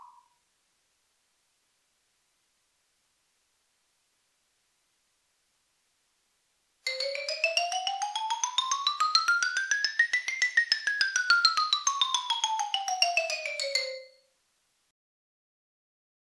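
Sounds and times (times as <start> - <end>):
musical instruments playing: 6.9 - 14.2.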